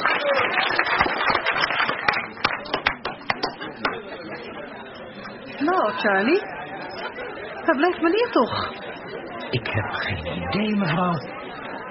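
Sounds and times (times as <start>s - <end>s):
audience applause: 0.0s - 4.0s
crowd murmur: 1.2s - 11.8s
speech: 5.9s - 6.6s, 7.7s - 8.8s, 9.5s - 11.4s.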